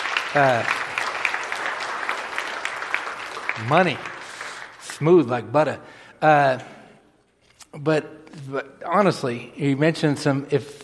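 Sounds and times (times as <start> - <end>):
audience applause: 0.0 - 4.9
speech: 0.3 - 0.8, 3.6 - 4.1, 5.0 - 6.7, 7.8 - 10.8.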